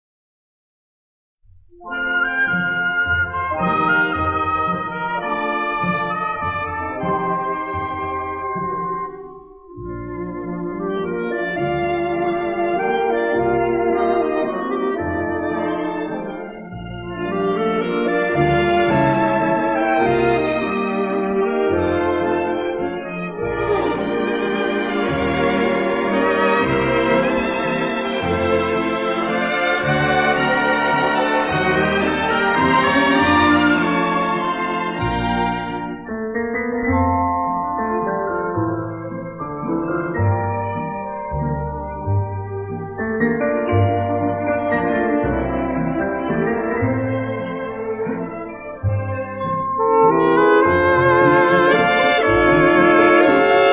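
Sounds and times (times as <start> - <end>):
variety orchestra playing: 1.8 - 53.7.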